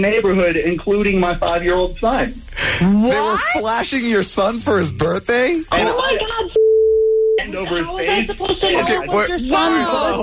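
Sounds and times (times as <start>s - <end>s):
speech: 0.0s - 6.6s, 7.5s - 10.2s
phone call connecting beep: 6.6s - 7.4s.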